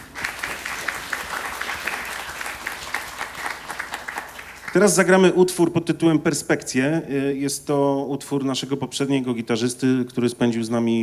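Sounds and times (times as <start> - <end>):
audience applause: 0.0 - 5.1
speech: 4.8 - 11.0.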